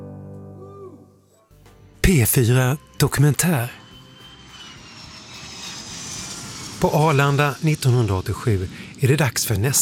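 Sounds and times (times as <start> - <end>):
speech: 2.1 - 3.8, 6.8 - 9.8
airplane landing at Arlanda airport: 2.4 - 9.8.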